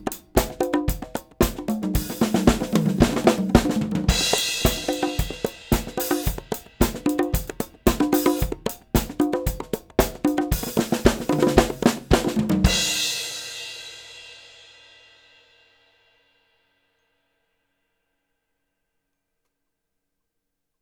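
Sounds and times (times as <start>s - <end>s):
disco percussion at 112 bpm: 0.0s - 14.0s.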